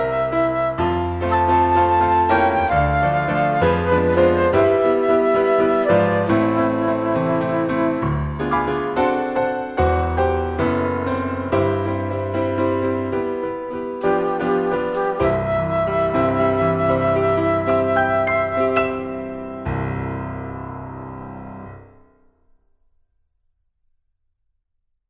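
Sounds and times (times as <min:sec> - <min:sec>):
flute: 0:00.0 - 0:09.2, 0:14.0 - 0:19.8
piano: 0:00.0 - 0:22.5.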